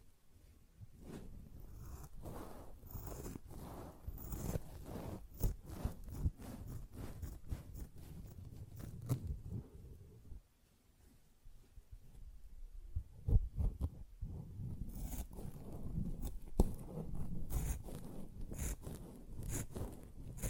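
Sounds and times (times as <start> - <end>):
sponge scratched, brushed and squished: 1.0 - 9.6, 13.6 - 20.4.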